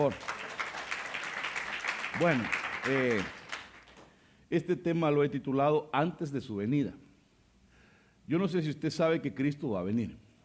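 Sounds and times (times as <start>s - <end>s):
speech: 0.0s - 0.3s, 2.2s - 3.4s, 4.5s - 7.0s, 8.3s - 10.2s
audience applause: 0.0s - 4.0s.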